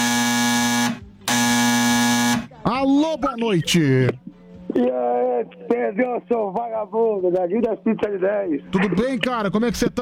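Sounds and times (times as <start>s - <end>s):
telephone ringing: 0.0s - 2.5s
speech: 3.1s - 10.0s.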